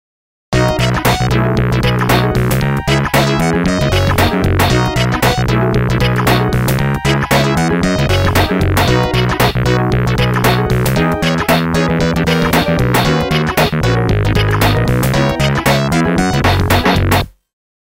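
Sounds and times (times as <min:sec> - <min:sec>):
ringtone: 0:00.6 - 0:17.2.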